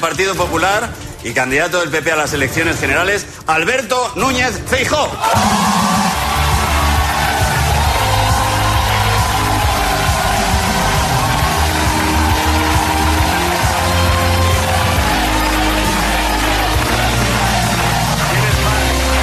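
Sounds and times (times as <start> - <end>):
speech: 0.0 - 6.0
studio audience cheering and chanting: 5.2 - 19.2.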